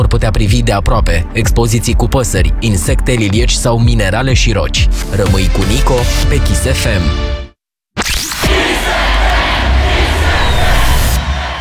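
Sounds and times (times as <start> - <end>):
speech: 0.0 - 7.4
swooshing sweep: 8.0 - 11.5
crowd of radio listeners cheering: 8.5 - 11.5.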